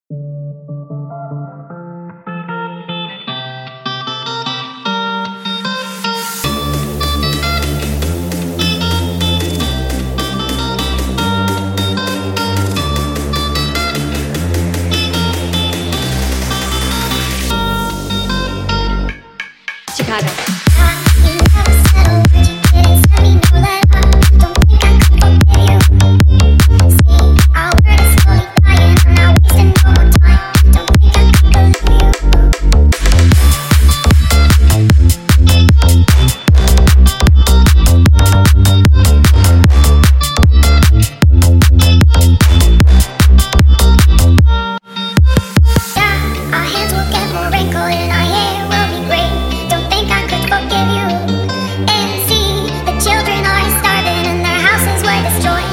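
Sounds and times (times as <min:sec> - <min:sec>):
nightcore music: 0:00.1 - 0:55.7.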